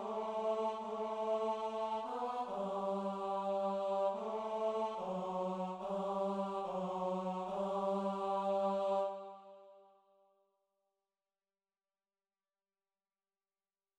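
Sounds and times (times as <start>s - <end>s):
tenor singing: 0.0s - 9.4s.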